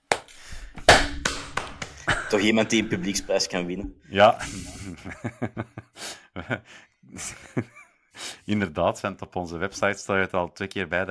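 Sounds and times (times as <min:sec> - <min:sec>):
brief applause for the harmonie: 0:00.0 - 0:02.9
laughter: 0:01.9 - 0:07.9
speech: 0:02.3 - 0:05.8, 0:06.4 - 0:07.7, 0:08.5 - 0:11.0.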